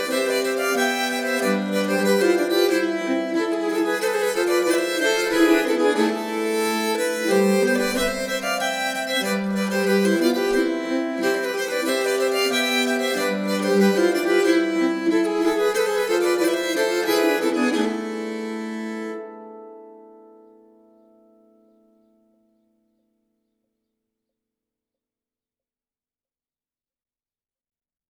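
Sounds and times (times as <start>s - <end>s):
nyckelharpa playing polonaises: 0.0s - 21.3s.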